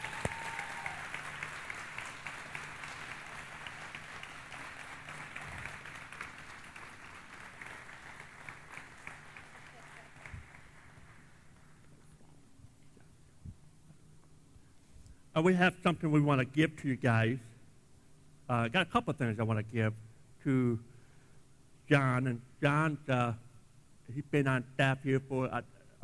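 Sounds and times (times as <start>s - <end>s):
audience applause: 0.0s - 11.7s
speech: 15.4s - 17.5s, 18.5s - 20.9s, 21.9s - 23.4s, 24.1s - 26.0s.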